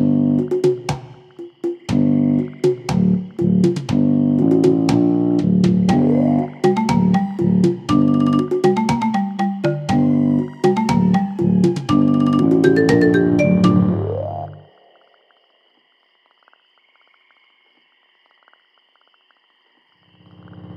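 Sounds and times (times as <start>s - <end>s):
swamp music: 0.0s - 14.7s.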